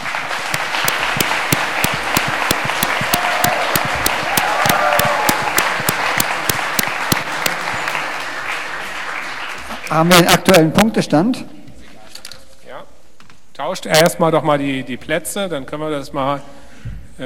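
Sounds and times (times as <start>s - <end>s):
audience applause: 0.0s - 10.3s
speech: 9.9s - 11.6s, 13.7s - 16.6s.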